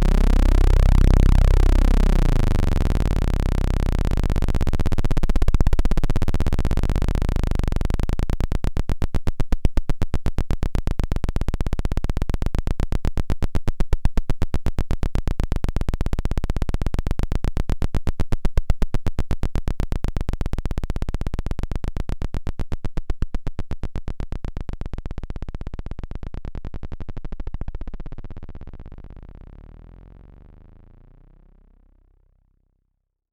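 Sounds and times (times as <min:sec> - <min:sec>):
Roland Jupiter-6 synthesizer 32-foot sub-audio tone: 0:00.0 - 0:32.4.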